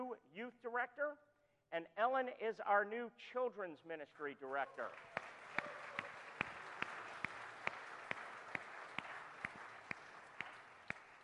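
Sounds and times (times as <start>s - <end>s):
speech: 0.0s - 5.8s
audience applauding: 4.6s - 11.2s.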